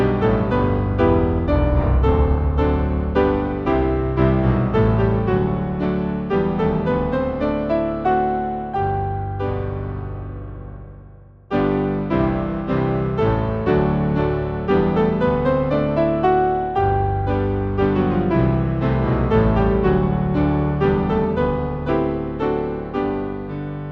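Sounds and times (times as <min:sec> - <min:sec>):
fancy piano playing a hymn: 0:00.0 - 0:23.9.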